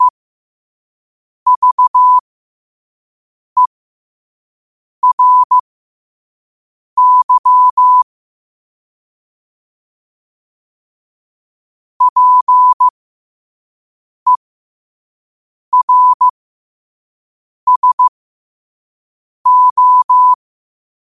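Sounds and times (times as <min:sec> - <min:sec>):
morse code at 5 wpm: 0:01.5 - 0:02.2, 0:05.0 - 0:05.6, 0:07.0 - 0:08.0, 0:12.0 - 0:12.9, 0:15.8 - 0:16.3, 0:17.7 - 0:18.1, 0:19.5 - 0:20.4.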